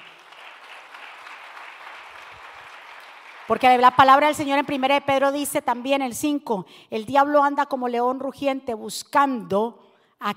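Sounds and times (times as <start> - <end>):
loud audience applause: 0.0 - 3.6
speech: 3.5 - 10.3.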